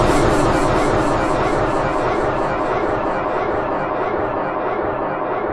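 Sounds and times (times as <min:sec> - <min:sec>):
echo effect: 0:00.0 - 0:05.4.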